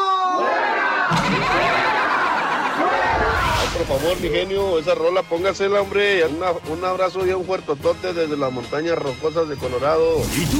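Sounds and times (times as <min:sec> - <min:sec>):
audience cheering and laughing: 0:00.7 - 0:03.7
speech: 0:03.6 - 0:10.5.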